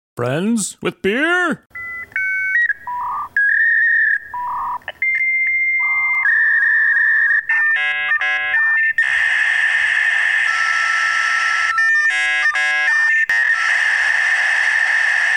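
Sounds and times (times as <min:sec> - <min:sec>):
speech: 0:00.2 - 0:01.8
dial-up modem connecting: 0:01.8 - 0:15.3.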